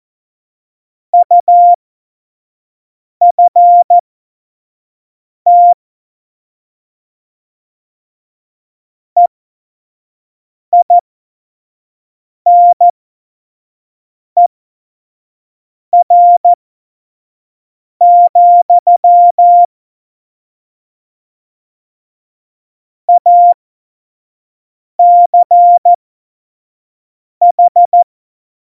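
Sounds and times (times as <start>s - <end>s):
Morse code course beeps: 1.2s - 1.8s, 3.3s - 4.0s, 5.5s - 5.8s, 12.5s - 12.9s, 16.0s - 16.6s, 18.0s - 19.7s, 23.1s - 23.6s, 25.0s - 26.0s, 27.4s - 28.0s.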